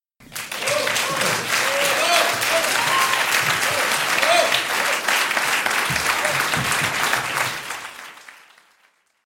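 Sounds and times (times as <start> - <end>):
applause with shouts: 0.2 - 9.2.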